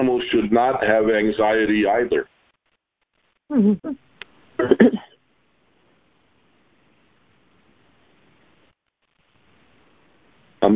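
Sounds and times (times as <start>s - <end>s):
speech: 0.1s - 2.3s, 3.5s - 4.0s, 4.6s - 5.1s
throat clearing: 4.6s - 5.2s.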